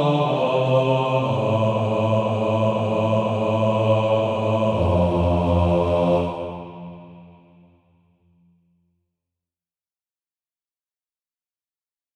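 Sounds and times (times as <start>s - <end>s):
male choir bass singing: 0.0s - 7.7s.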